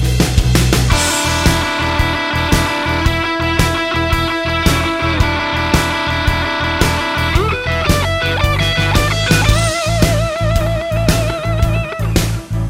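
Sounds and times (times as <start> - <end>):
roadhouse guitar licks: 0.1 - 12.6.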